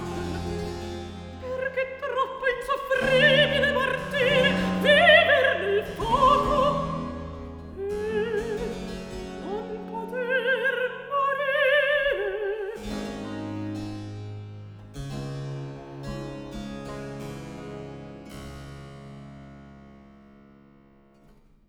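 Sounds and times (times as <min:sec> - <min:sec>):
cantata recitative: 0:00.0 - 0:14.1.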